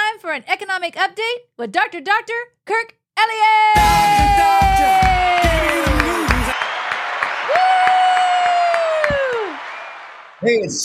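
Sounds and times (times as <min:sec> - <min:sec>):
speech: 0:00.3 - 0:05.9, 0:10.4 - 0:10.8
thumping beats: 0:03.8 - 0:06.6
studio audience applauding and cheering: 0:03.8 - 0:10.8.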